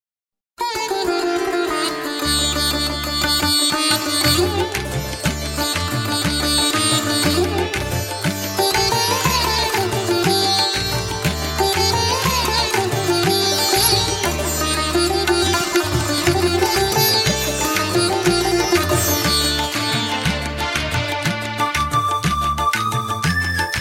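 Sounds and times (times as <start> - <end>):
Afghan sitar playing: 0.6 - 23.7.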